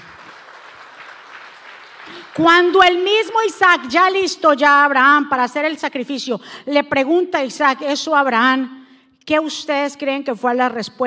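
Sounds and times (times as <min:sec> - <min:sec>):
loud audience applause: 0:00.0 - 0:02.4
speech: 0:02.2 - 0:11.0.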